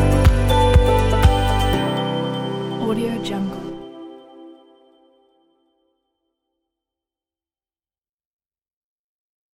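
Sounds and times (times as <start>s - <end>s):
motivational background music: 0.0s - 5.3s.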